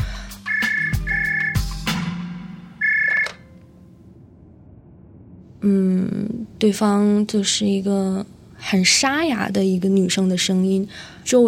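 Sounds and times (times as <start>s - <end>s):
phone dialing tones: 0.5s - 1.6s, 2.8s - 3.5s
low hum: 0.5s - 8.6s
speech: 5.6s - 11.4s.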